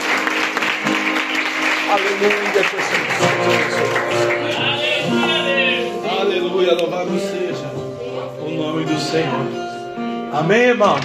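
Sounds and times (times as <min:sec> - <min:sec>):
audience applause: 0:00.0 - 0:05.5
speech: 0:01.9 - 0:04.4, 0:06.4 - 0:07.8, 0:08.6 - 0:09.7, 0:10.3 - 0:11.0.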